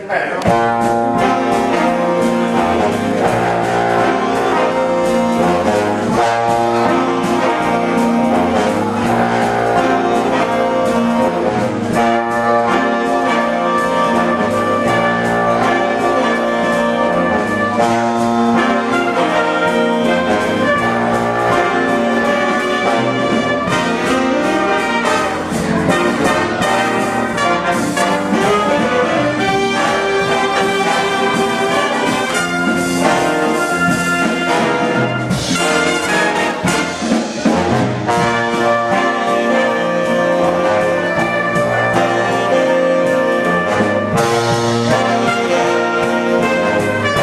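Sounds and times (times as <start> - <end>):
big band jazz Christmas song: 0.1 - 47.2.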